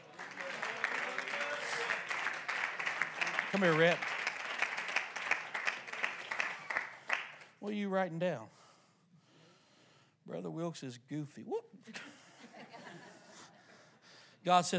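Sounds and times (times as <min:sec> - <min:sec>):
audience clapping hands: 0:00.0 - 0:07.6
speech: 0:03.6 - 0:04.1, 0:07.6 - 0:08.6, 0:10.3 - 0:12.0, 0:14.4 - 0:14.7
laughter: 0:11.9 - 0:13.9.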